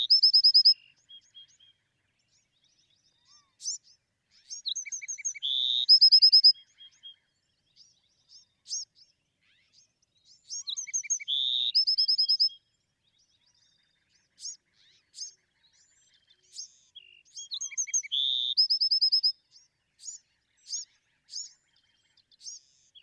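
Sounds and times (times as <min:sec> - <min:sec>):
Bewick's wren singing: 0:00.0 - 0:01.6, 0:03.1 - 0:07.1, 0:10.6 - 0:12.6, 0:13.6 - 0:19.3.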